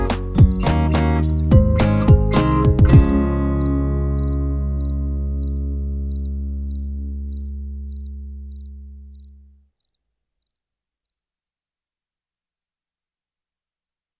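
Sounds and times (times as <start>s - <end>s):
spring rain music: 0.0s - 9.1s.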